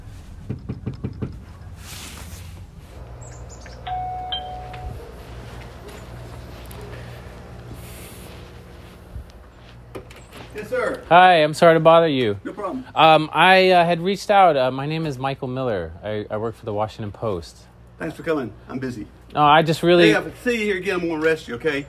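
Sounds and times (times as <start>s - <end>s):
low steady hum: 0.0s - 21.8s
knocking on a door: 0.4s - 1.4s
brief electronic chime: 3.9s - 5.0s
speech: 10.6s - 21.8s.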